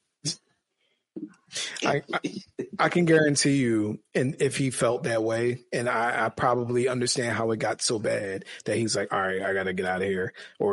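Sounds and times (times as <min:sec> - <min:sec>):
person imitating annoying heavy breathing: 0:01.6 - 0:02.8, 0:08.4 - 0:08.8, 0:10.3 - 0:10.7
speech: 0:01.8 - 0:10.7.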